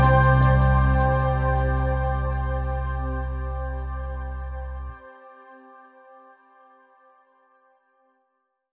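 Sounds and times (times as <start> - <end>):
church music: 0.0 - 5.0.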